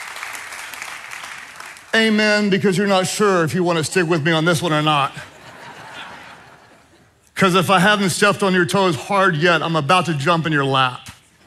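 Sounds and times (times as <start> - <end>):
audience clapping gently: 0.0 - 2.1
speech: 2.0 - 5.3, 7.4 - 11.0
laughter: 5.1 - 7.2.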